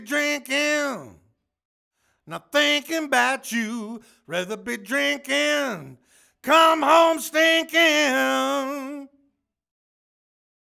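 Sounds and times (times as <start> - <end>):
lead vocals: 0.0 - 1.2, 2.3 - 9.2.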